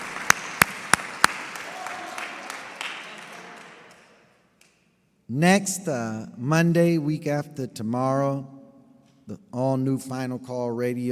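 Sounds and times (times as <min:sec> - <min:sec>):
scattered crowd applause: 0:00.0 - 0:04.3
loud hand claps: 0:00.0 - 0:04.9
speech: 0:05.3 - 0:08.6, 0:09.3 - 0:11.1.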